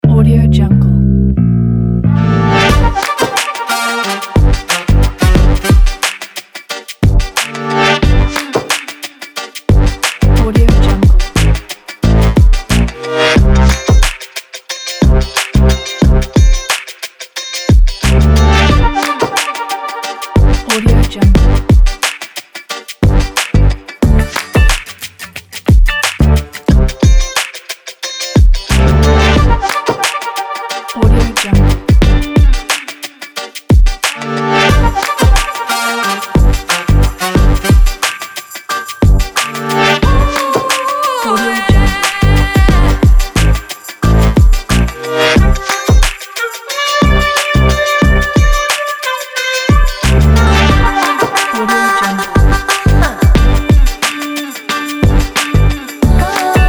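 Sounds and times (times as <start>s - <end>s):
funky blues music: 1.1s - 56.6s.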